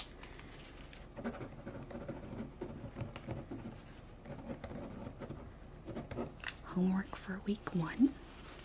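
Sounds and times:
pen scratching across paper while a quick note is jotted down: 1.2s - 6.3s
speech: 6.8s - 8.3s.

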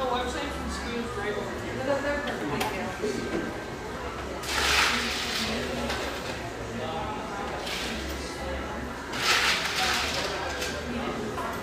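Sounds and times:
café chatter murmur in a ski town: 0.0s - 11.6s.

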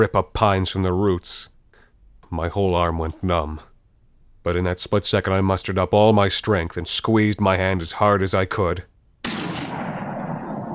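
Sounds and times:
speech: 0.0s - 1.5s, 2.3s - 3.7s, 4.4s - 9.4s
gunshot: 9.2s - 10.7s.

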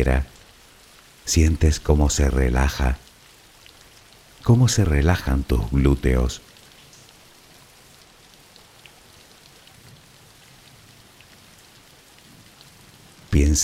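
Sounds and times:
speech: 0.0s - 0.3s, 1.3s - 3.0s, 4.4s - 6.5s, 13.5s - 13.6s
rain falling: 0.0s - 13.6s.

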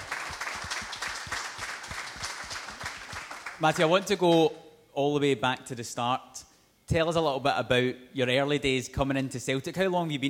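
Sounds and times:
live audience applause: 0.0s - 4.1s
speech: 3.6s - 10.2s.

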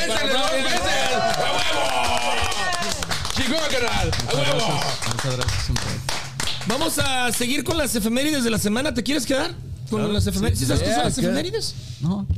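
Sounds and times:
scattered hand clapping: 0.0s - 7.7s
speech: 3.7s - 12.3s.

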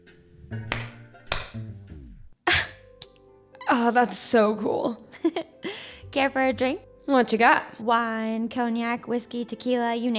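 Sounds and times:
speech: 0.5s - 0.8s, 3.8s - 10.1s
hand clap: 0.7s - 1.7s.

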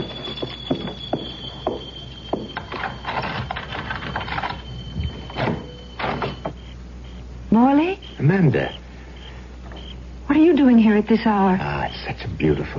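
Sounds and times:
keys jingling and scraping in a lock: 2.6s - 6.3s
speech: 7.6s - 8.8s, 10.4s - 12.7s.

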